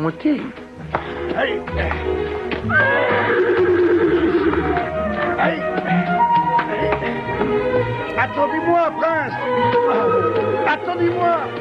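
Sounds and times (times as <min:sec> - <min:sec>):
speech: 0:00.0 - 0:00.6, 0:01.3 - 0:03.6
clopping hooves: 0:00.0 - 0:11.5
horses neighing: 0:02.7 - 0:04.9.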